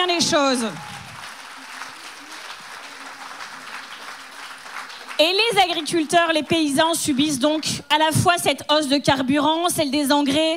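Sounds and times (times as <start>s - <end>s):
speech: 0.0s - 1.0s, 5.2s - 10.5s
audience applauding: 0.0s - 7.7s.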